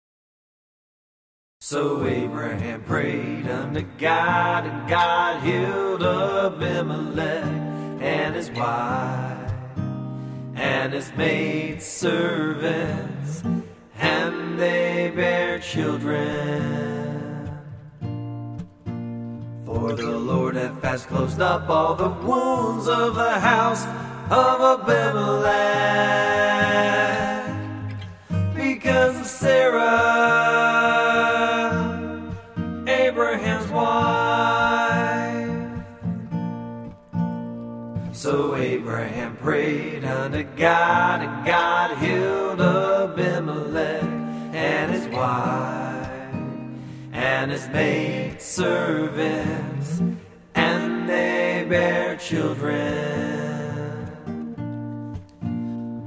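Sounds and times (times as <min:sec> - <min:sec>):
acoustic music: 0:01.9 - 0:56.0.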